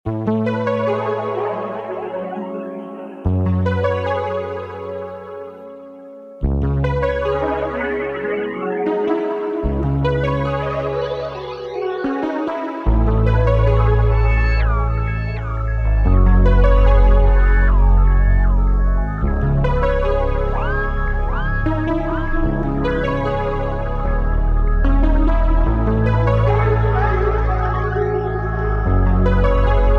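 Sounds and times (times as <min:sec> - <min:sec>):
music at 150 bpm in C minor: 0:00.0 - 0:29.9.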